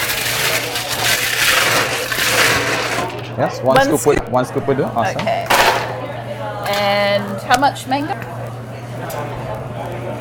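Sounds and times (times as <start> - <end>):
blender crushing ice: 0.0 - 3.3
speech: 3.4 - 5.5, 6.8 - 8.4.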